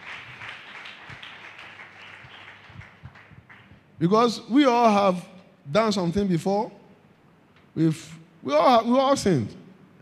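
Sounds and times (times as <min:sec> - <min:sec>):
audience clapping hands: 0:00.0 - 0:04.0
speech: 0:04.0 - 0:06.8, 0:07.8 - 0:09.6.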